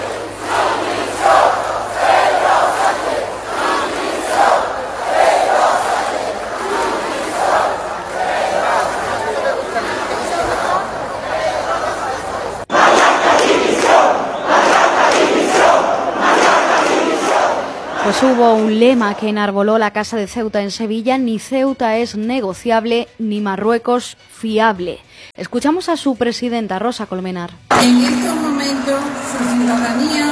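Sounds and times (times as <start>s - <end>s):
crowd shouting protest chants: 0.0s - 18.8s
speech: 18.8s - 30.2s.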